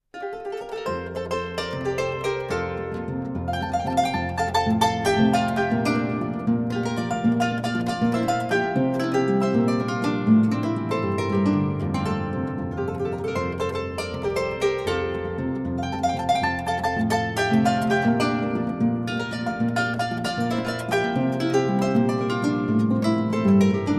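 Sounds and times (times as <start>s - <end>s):
harp playing joropo: 0.1s - 23.9s.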